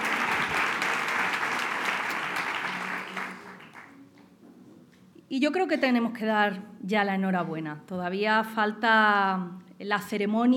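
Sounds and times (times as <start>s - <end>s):
applause at a Partido Popular political gathering in memory of a woman: 0.0s - 4.0s
speech: 5.3s - 10.5s.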